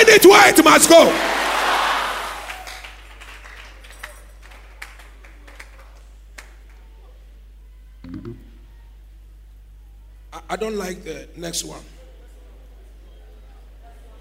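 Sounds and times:
speech: 0.2 - 1.4, 10.5 - 12.0
crowd clapping hands: 1.1 - 7.0.

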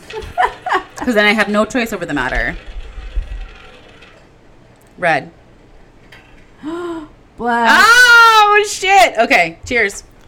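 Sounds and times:
roulette wheel spinning: 0.0 - 4.6
speech: 0.2 - 2.7, 5.0 - 5.4, 7.4 - 10.1.

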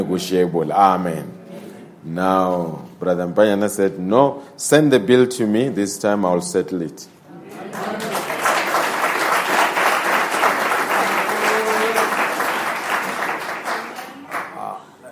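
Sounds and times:
speech: 0.0 - 1.4, 2.0 - 8.1
audience clapping hands: 7.6 - 14.8.

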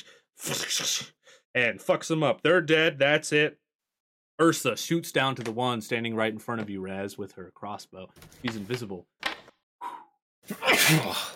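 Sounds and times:
speech: 0.5 - 3.6, 4.4 - 9.2, 10.5 - 11.3
person mimicking a sneeze: 10.5 - 11.3.

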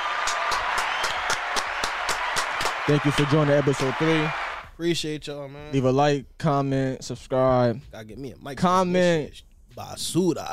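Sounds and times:
hands clapping: 0.0 - 4.6
speech: 2.9 - 10.5.

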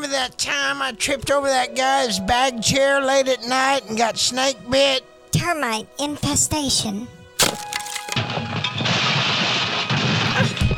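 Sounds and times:
speech: 0.1 - 7.7
falling through a collapsing wooden porch: 7.4 - 10.7.

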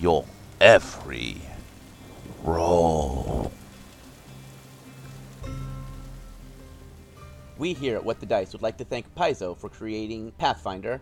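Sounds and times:
speech: 0.0 - 1.5, 2.4 - 3.6, 7.6 - 10.9
thunder rolling: 1.0 - 4.0.

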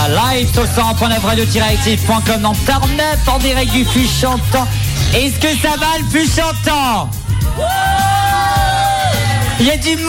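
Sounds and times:
speech: 0.3 - 8.1, 9.6 - 10.0
laughter: 0.6 - 6.1
crowd cheering and applauding: 7.1 - 10.0.

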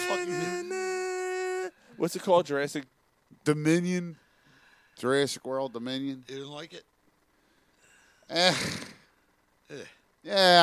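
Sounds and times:
speech: 0.1 - 0.8, 2.0 - 4.2, 5.0 - 6.9, 8.3 - 8.9, 9.7 - 10.6
loud sneeze: 8.4 - 9.0.

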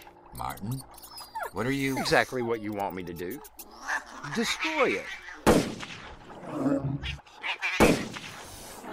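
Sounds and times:
speech: 0.4 - 5.7
gunshot fired at a creature: 5.5 - 6.1, 7.8 - 8.5.

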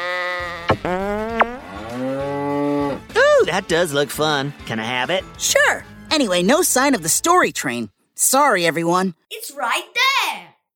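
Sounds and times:
electronic noisemaker playing cow moo: 0.0 - 3.0
speech: 3.6 - 10.5.

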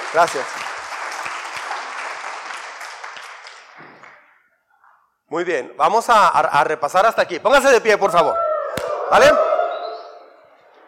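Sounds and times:
audience applause: 0.0 - 4.3
speech: 0.1 - 0.6, 5.3 - 8.4, 9.1 - 9.5.

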